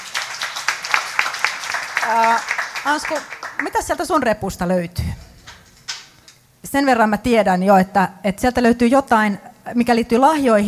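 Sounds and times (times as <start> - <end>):
audience clapping for a touring production's crew member: 0.0 - 4.0
speech: 2.1 - 5.1, 6.7 - 10.6.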